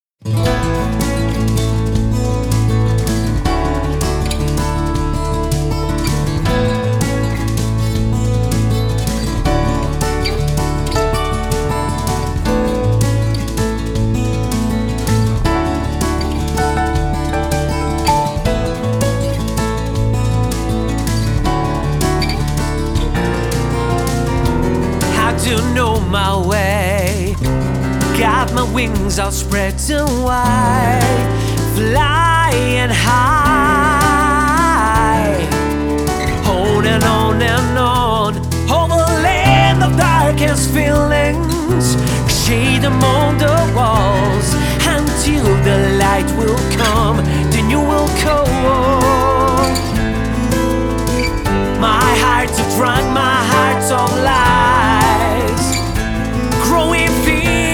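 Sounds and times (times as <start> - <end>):
acoustic music: 0.0 - 57.7.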